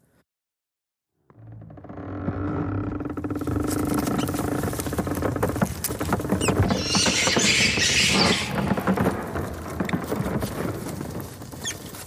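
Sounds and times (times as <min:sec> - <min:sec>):
low creaking rumble: 0:01.2 - 0:12.0
rats squeaking, scratching and rustling inside a ship's hull: 0:03.6 - 0:09.2, 0:10.0 - 0:12.0.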